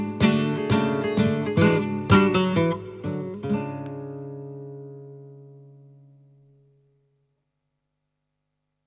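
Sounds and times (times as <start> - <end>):
solea flamenco music: 0.0 - 6.6.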